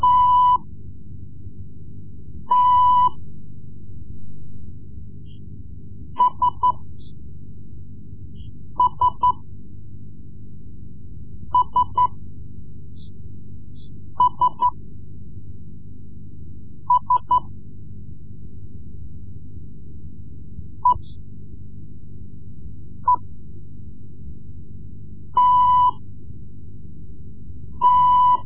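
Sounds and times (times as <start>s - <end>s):
Morse code lessons: 0.0s - 0.6s, 2.5s - 3.2s, 6.2s - 6.8s, 8.8s - 9.4s, 11.6s - 12.1s, 14.2s - 14.8s, 16.9s - 17.5s, 25.4s - 26.0s, 27.8s - 28.4s.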